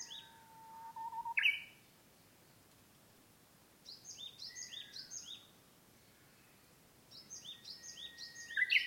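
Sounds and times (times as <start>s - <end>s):
Japanese bush warbler song, uguisu, level whistle and ornamented phrase: 0.0s - 1.8s, 3.8s - 5.5s, 6.3s - 8.8s.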